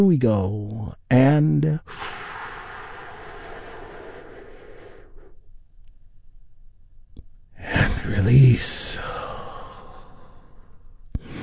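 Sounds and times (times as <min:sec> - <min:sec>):
speech: 0:00.0 - 0:02.2, 0:08.1 - 0:09.2
long deep breath drawn in: 0:01.9 - 0:05.4, 0:09.0 - 0:11.4.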